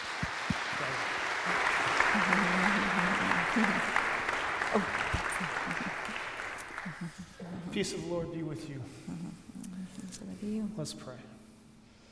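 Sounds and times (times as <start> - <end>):
audience applause welcoming two speakers to a morning gathering: 0.0 - 7.5
laughter: 0.8 - 10.0
speech: 7.8 - 9.4, 10.4 - 11.3.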